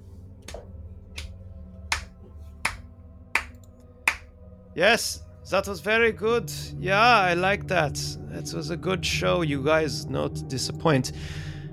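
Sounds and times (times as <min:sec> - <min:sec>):
slow clap: 0:00.5 - 0:02.8, 0:03.4 - 0:04.2
speech: 0:04.8 - 0:11.6.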